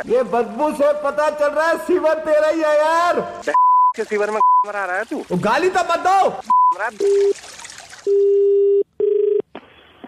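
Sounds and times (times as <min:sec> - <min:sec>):
speech: 0:00.0 - 0:08.6
telephone line tones as a call is placed: 0:08.1 - 0:09.4.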